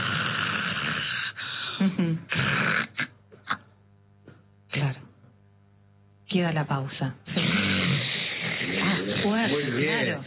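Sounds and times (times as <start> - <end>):
person imitating snoring: 0.0 - 3.6, 7.3 - 10.2
speech: 1.8 - 3.0, 6.4 - 7.3.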